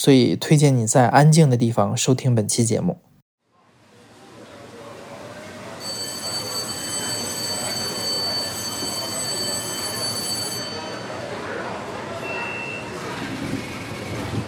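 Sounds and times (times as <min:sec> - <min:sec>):
speech: 0:00.0 - 0:03.1
Beijing subway train running: 0:06.2 - 0:14.4.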